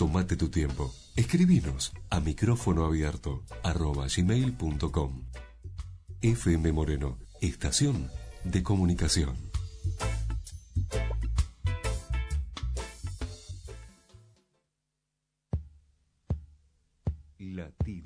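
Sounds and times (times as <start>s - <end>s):
busy music: 0.0s - 14.6s
speech: 0.1s - 5.5s, 6.2s - 10.1s
heartbeat sound effect in radio show intro: 15.6s - 18.0s.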